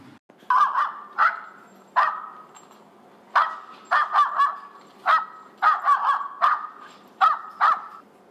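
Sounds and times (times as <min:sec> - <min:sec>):
dog's high-pitched fear barking: 0:00.5 - 0:02.5, 0:03.4 - 0:08.0.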